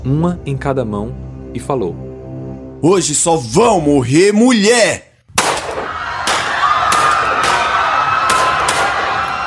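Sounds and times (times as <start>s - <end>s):
speech: 0.0s - 2.1s, 2.8s - 5.1s
gunshots: 5.3s - 9.2s.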